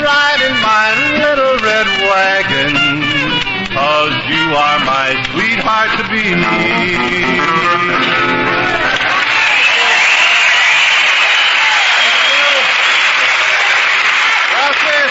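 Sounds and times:
person singing a song: 0:00.0 - 0:08.8
live audience applause: 0:08.0 - 0:15.0.

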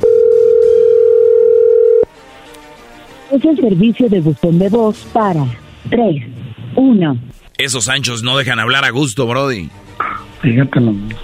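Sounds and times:
telephone call tone while dialing: 0:00.0 - 0:02.1
speech: 0:03.4 - 0:11.2.

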